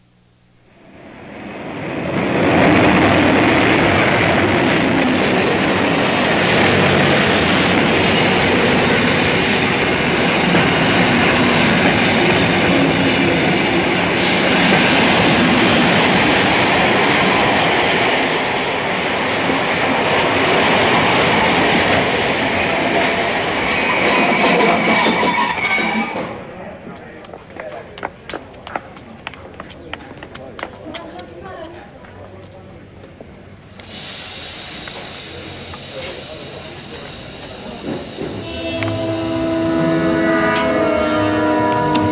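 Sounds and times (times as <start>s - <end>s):
train: 0.0s - 42.1s.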